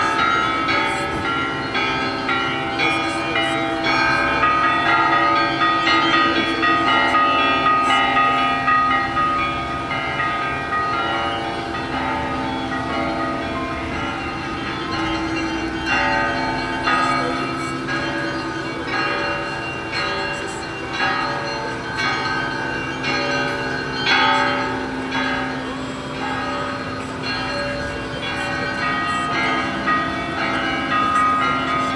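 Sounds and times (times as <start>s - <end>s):
bells ringing in Sergiyev Posad: 0.0s - 31.9s
street ambience in Sergiyev Posad: 0.0s - 31.9s.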